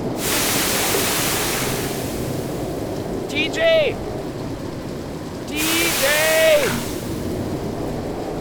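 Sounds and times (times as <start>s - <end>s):
rough sea waves during storm: 0.2s - 3.5s, 5.5s - 8.3s.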